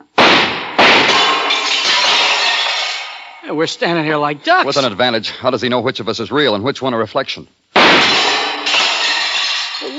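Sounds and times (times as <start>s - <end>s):
gunshots: 0.2s - 3.2s, 7.8s - 9.5s
mirror glass shattering: 0.2s - 3.4s, 7.8s - 9.9s
breaking and tinkling glass shards: 1.5s - 3.4s, 8.6s - 9.9s
speech: 3.5s - 7.6s.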